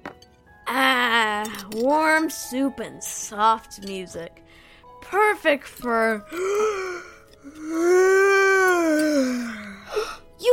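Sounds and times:
speech: 0:01.7 - 0:10.5
yawn: 0:06.3 - 0:10.2.

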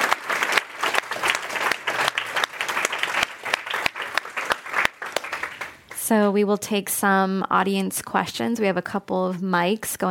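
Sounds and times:
audience applause: 0:00.0 - 0:05.9
speech: 0:06.1 - 0:10.0.

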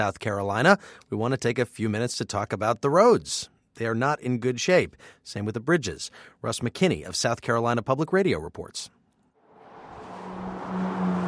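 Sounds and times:
speech: 0:00.0 - 0:09.0
traffic on a busy stretch of Interstate 85 between Greenville and Spartanburg: 0:09.4 - 0:11.2
vehicle engine hum approaching: 0:09.4 - 0:11.2.

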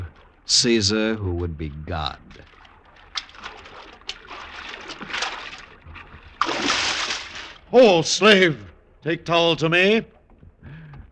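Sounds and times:
speech: 0:00.5 - 0:02.5, 0:07.7 - 0:10.2
water splashing as a man swims in a dramatized scene: 0:02.2 - 0:08.8.

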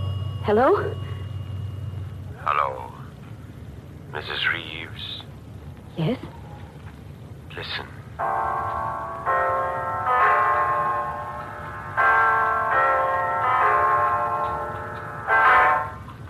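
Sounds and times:
clock bell striking the hour: 0:00.0 - 0:02.8, 0:08.2 - 0:16.2
speech: 0:00.4 - 0:01.1, 0:02.4 - 0:03.0, 0:04.1 - 0:05.2, 0:06.0 - 0:06.4, 0:07.6 - 0:10.4.

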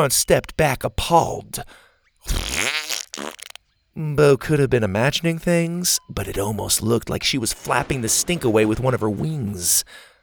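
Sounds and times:
speech: 0:00.0 - 0:02.7, 0:04.0 - 0:10.1
fart sound effect: 0:02.2 - 0:03.6.

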